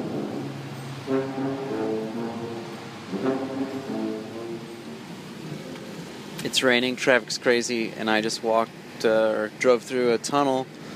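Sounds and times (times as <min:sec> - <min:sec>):
man playing a tuba in a tunnel: 0:01.0 - 0:05.4
speech: 0:06.6 - 0:10.8.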